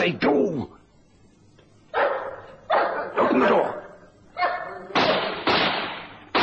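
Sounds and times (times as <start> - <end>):
speech: 0.0 - 0.8
dog barking: 1.9 - 5.2.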